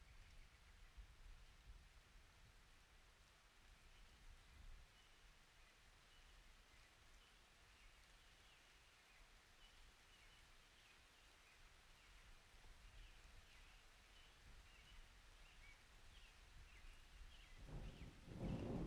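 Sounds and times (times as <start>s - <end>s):
summer rain: 0.0s - 18.8s
summer thunder: 17.6s - 18.8s.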